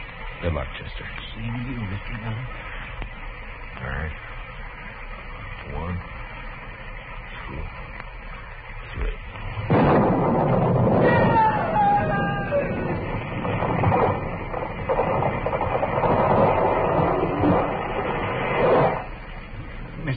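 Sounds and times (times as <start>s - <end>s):
speech: 0.4s - 2.8s, 3.8s - 4.3s, 5.6s - 6.2s
lightning striking a tree: 9.4s - 19.9s.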